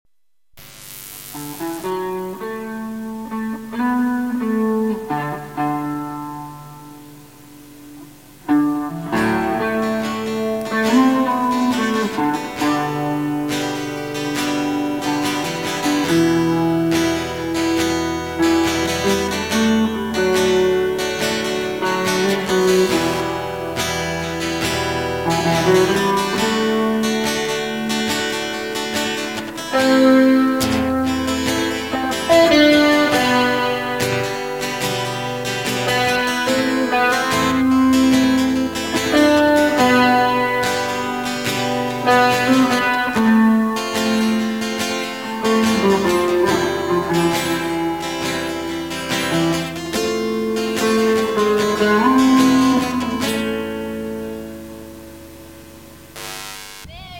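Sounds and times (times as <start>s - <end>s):
instrumental intermezzo duet: 1.3s - 57.1s.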